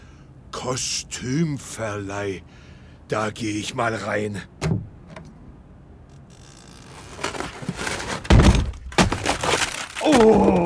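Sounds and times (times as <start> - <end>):
speech: 0.6 - 4.6
wooden door being smashed and broken: 7.8 - 10.6.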